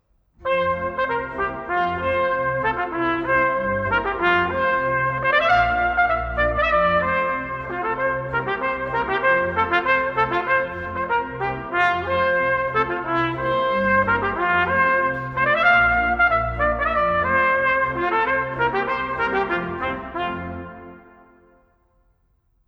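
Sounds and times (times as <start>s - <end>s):
polka music: 0.4s - 21.5s.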